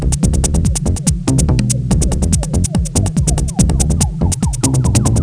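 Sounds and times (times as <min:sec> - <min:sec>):
theme music: 0:00.2 - 0:05.2.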